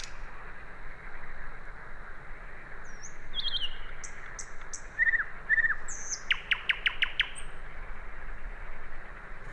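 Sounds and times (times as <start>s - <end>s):
Common nightingale singing: 0.0s - 0.4s, 2.8s - 7.7s
background hum: 0.0s - 9.5s.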